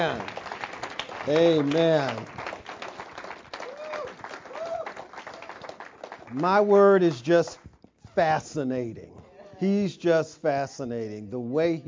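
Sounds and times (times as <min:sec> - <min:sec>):
audience applause: 0:00.0 - 0:06.9
speech: 0:01.2 - 0:02.4, 0:06.3 - 0:11.8.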